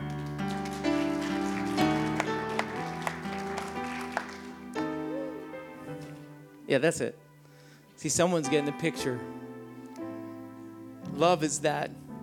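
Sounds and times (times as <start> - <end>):
a few people clapping: 0.0 - 5.4
sustained keyboard chords: 0.0 - 12.2
speech: 6.7 - 7.2, 8.0 - 9.4, 11.2 - 12.0.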